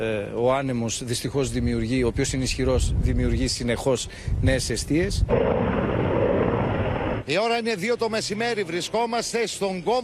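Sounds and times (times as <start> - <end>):
speech: 0.0 - 5.8, 7.3 - 10.0
firefighting aircraft engine roaring: 5.2 - 7.3.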